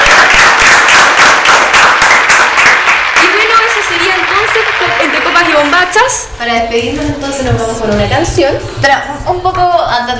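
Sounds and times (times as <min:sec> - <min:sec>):
studio applause: 0:00.0 - 0:06.2
speech: 0:05.9 - 0:10.1.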